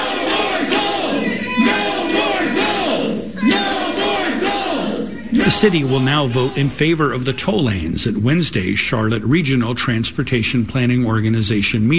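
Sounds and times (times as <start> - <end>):
protesters shouting down council members in council chamber: 0.0 - 7.0
speech: 5.4 - 11.9.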